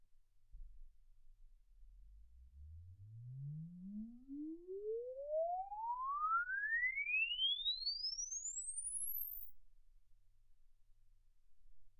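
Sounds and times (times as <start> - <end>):
exponential sine sweep from 10 Hz to 24 kHz: 2.1 - 9.9.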